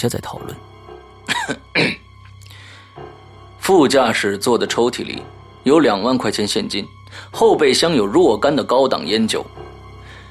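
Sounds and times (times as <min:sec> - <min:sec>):
speech: 0:00.0 - 0:00.7, 0:01.5 - 0:01.9, 0:03.7 - 0:09.6
man coughing: 0:01.3 - 0:02.1.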